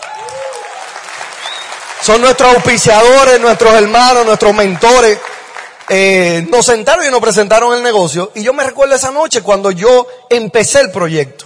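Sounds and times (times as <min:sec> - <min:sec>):
audience applause: 0:00.0 - 0:06.5
speech: 0:02.0 - 0:05.3, 0:05.9 - 0:11.4.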